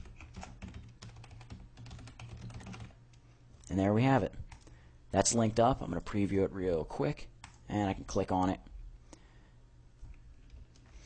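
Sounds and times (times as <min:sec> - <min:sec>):
typing a URL on a computer keyboard into Fireworks software: 0:00.0 - 0:03.0, 0:07.4 - 0:07.6
speech: 0:03.7 - 0:04.4, 0:05.1 - 0:08.7.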